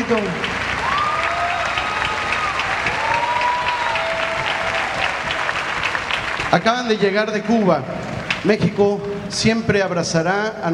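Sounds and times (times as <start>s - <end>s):
audience applauding as a performer is welcomed onstage: 0.0s - 8.4s
speech: 0.1s - 0.5s, 6.5s - 10.7s.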